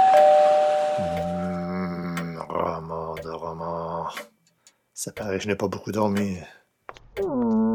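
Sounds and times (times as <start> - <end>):
doorbell ringing: 0.0 - 1.6
speech: 3.2 - 4.3, 5.0 - 6.6, 7.2 - 7.6.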